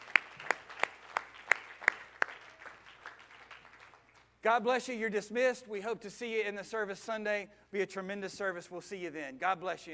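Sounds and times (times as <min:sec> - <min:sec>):
audience clapping hands: 0:00.0 - 0:04.4
speech: 0:04.4 - 0:09.9.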